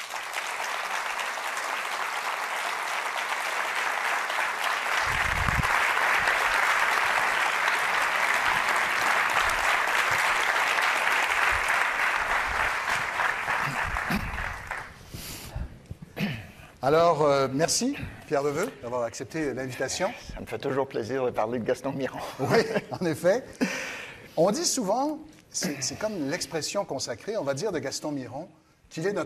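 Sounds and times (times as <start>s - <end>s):
audience applause welcoming a guest essayist and poet onto a stage: 0.0s - 15.0s
speech: 16.9s - 23.8s, 24.4s - 29.2s.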